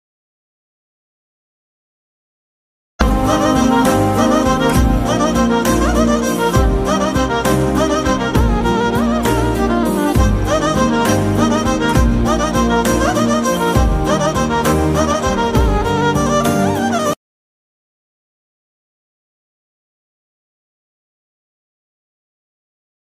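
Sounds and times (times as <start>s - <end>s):
Telugu ringtone background music: 3.0s - 17.2s.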